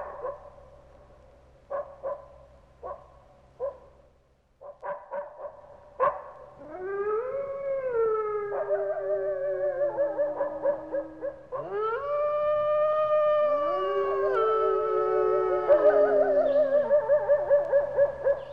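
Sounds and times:
coyote pack howling together: 6.4s - 18.5s.

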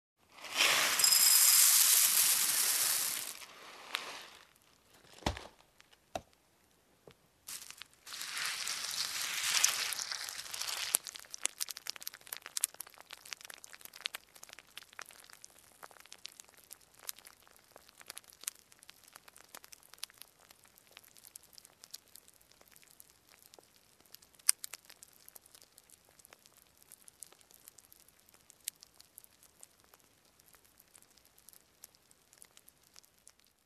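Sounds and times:
preparing cereal with milk: 0.2s - 5.8s, 7.5s - 12.8s.

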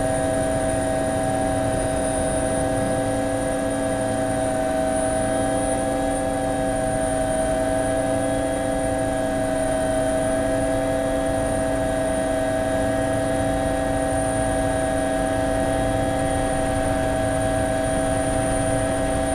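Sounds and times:
helicopter in flight heard from the cockpit: 0.0s - 19.3s.

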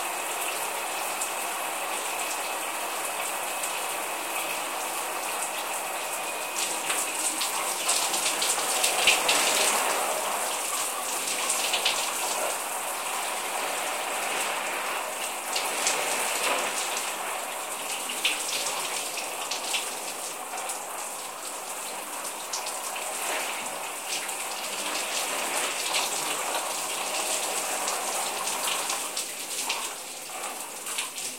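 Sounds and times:
shower running on a mat: 0.0s - 31.3s.

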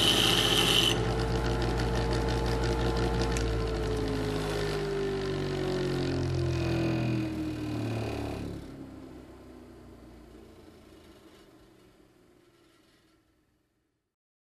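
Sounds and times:
construction noise: 0.0s - 8.8s.

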